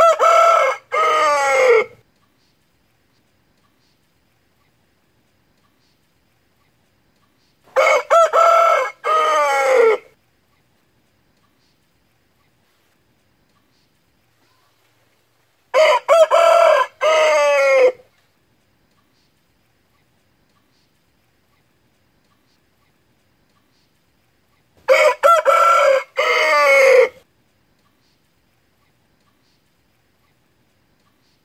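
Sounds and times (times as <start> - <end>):
fighting rooster crowing: 0.0 - 2.0, 7.7 - 10.1, 15.7 - 18.1, 24.8 - 27.2.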